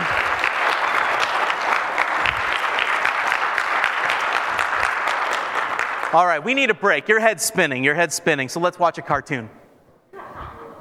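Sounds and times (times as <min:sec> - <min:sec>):
audience clapping: 0:00.0 - 0:06.8
speech: 0:06.1 - 0:09.6.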